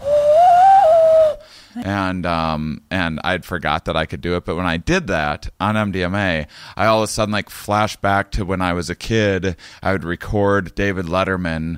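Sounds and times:
hand whistle: 0.0 - 1.4
speech: 1.9 - 11.7.

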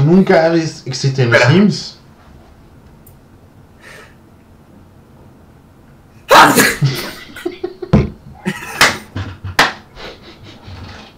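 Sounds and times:
speech: 0.1 - 2.0, 6.4 - 7.0
sneeze: 6.3 - 7.2
laughter: 6.6 - 11.0.

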